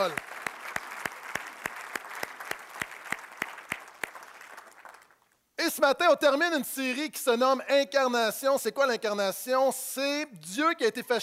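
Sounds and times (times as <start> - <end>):
speech: 0.0 - 0.3, 5.7 - 11.2
audience applauding: 0.0 - 5.3.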